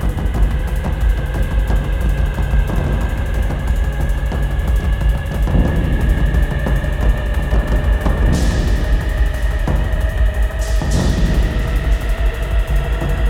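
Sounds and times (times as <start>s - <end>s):
180BPM action classic horror sci-fi music: 0.0s - 13.2s.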